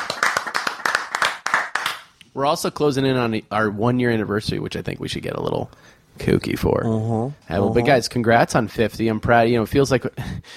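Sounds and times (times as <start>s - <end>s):
hands clapping: 0.0s - 2.1s
speech: 2.4s - 10.5s.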